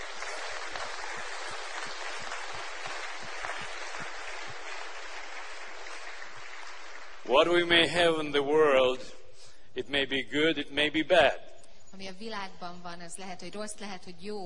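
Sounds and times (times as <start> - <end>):
church congregation applauding during a bilingual service: 0.0 - 9.0
speech: 7.3 - 9.2, 9.8 - 11.4, 12.0 - 14.4.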